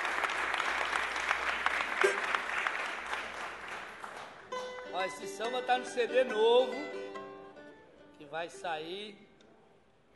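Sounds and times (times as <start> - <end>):
crowd applauding: 0.0 - 4.6
speech: 5.0 - 7.0, 8.3 - 9.2.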